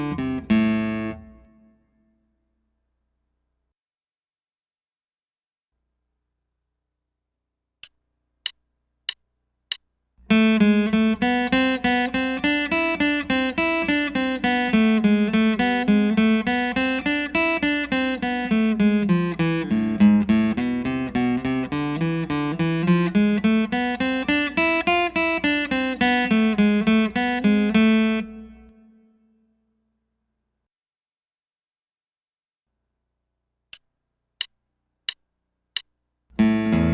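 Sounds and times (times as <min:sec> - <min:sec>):
guitar picking studies in A minor: 0:00.0 - 0:01.8, 0:10.2 - 0:28.9, 0:36.4 - 0:36.9.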